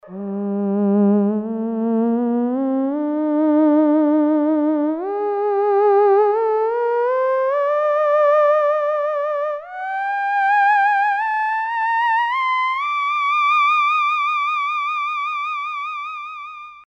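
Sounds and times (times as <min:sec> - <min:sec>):
theremin: 0:00.0 - 0:16.8.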